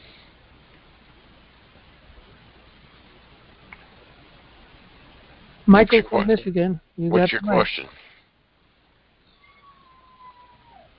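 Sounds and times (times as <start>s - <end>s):
low steady hiss: 0.0s - 10.9s
speech: 5.7s - 8.0s
dog whining: 9.3s - 10.9s.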